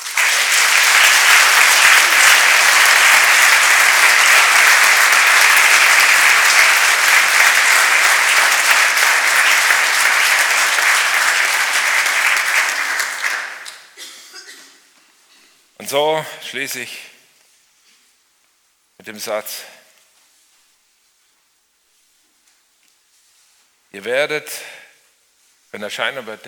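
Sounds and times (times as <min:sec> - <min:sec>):
audience applause: 0:00.0 - 0:14.0
speech: 0:15.9 - 0:17.1, 0:19.1 - 0:19.8, 0:23.9 - 0:24.8, 0:25.7 - 0:26.4.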